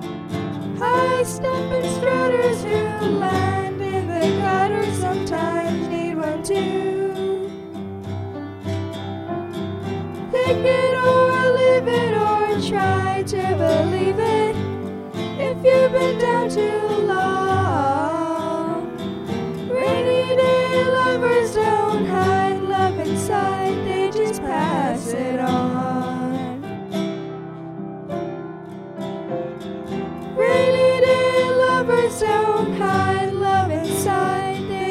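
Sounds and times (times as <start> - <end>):
guitar: 0.0 - 34.8
piano: 0.0 - 34.8
person singing: 0.8 - 7.7, 10.3 - 19.0, 19.7 - 26.8, 30.4 - 34.8.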